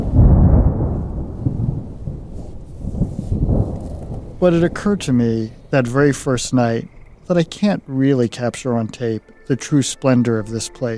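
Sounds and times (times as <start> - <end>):
deep rolling thunder over a lake: 0.0 - 7.6
faint hiss of rain: 0.0 - 10.9
speech: 4.4 - 10.9.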